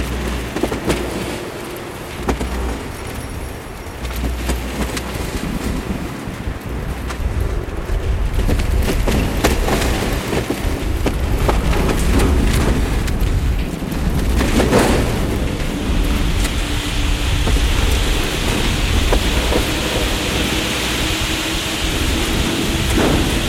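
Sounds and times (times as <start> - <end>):
wind roaring in gusts: 0.0 - 23.4.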